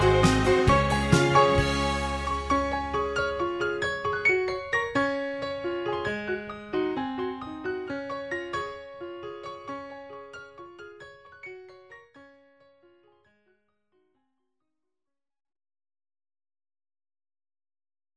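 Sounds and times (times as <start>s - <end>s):
piano: 0.0s - 13.6s.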